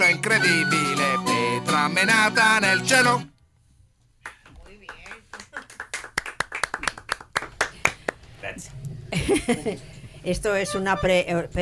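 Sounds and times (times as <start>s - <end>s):
speech: 0.3s - 3.3s, 8.6s - 11.6s
applause, hands clapping: 4.2s - 8.3s
laughter: 9.1s - 10.0s.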